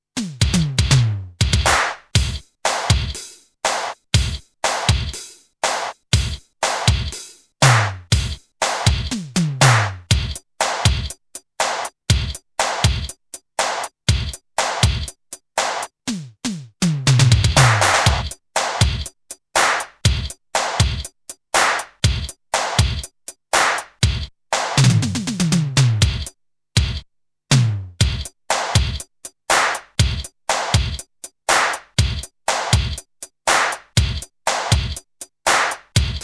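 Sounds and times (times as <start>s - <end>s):
Akai XR10 drum machine beat: 0.1s - 36.2s.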